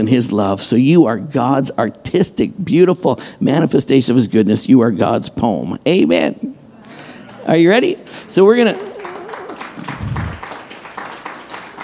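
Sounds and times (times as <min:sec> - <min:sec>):
speech: 0:00.0 - 0:06.5, 0:07.4 - 0:08.9
audience clapping: 0:08.4 - 0:11.8.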